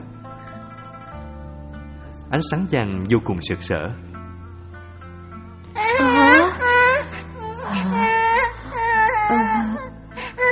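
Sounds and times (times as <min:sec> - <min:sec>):
speech: 0:02.3 - 0:04.1
child crying loudly: 0:05.8 - 0:10.5.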